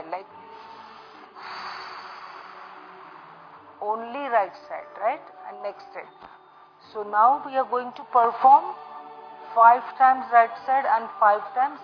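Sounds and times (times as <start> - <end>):
breath exhaled through the mouth during a breathing exercise: 0.5 - 3.7
speech: 3.8 - 8.9, 9.5 - 11.8.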